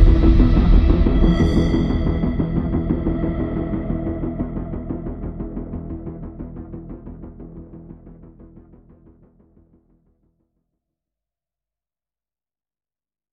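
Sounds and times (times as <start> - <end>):
epic instrumental music: 0.0 - 7.5.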